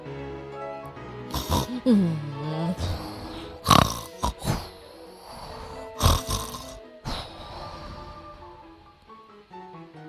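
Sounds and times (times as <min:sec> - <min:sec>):
voice imitating loud snoring: 0:01.3 - 0:08.4
speech: 0:01.8 - 0:03.0.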